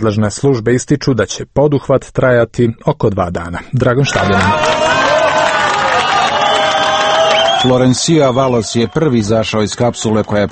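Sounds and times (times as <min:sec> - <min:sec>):
speech: 0:00.0 - 0:05.1, 0:07.6 - 0:10.5
rescuers and families cheering as the first Chilean miner emerges: 0:04.0 - 0:10.5
rescuers and families clapping: 0:04.1 - 0:09.1, 0:09.9 - 0:10.5.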